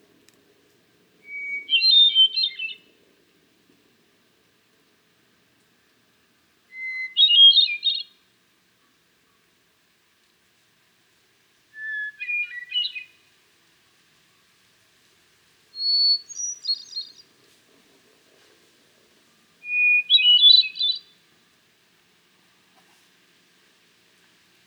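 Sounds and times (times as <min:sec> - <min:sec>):
Hermit Thrush Catharus guttatus: 0:00.0 - 0:04.8, 0:05.4 - 0:08.2, 0:11.7 - 0:13.3, 0:15.7 - 0:17.6, 0:19.4 - 0:21.4.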